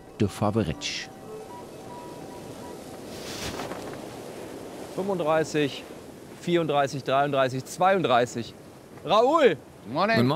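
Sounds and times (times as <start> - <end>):
speech: 0.2 - 1.1, 5.0 - 10.3
wind buffeting the microphone: 1.2 - 7.4
strong wind outdoors by the sea: 1.6 - 9.9.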